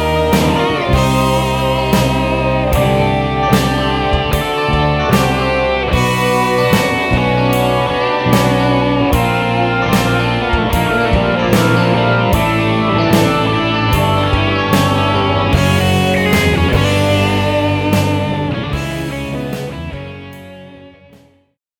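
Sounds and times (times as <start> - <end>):
electric guitar playing progressive fusion: 0.0 - 21.5.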